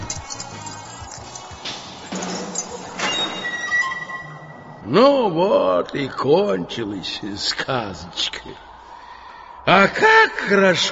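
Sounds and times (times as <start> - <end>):
door rattling with rusty locks: 0.0 - 4.2
speech: 4.9 - 8.7, 9.6 - 10.9.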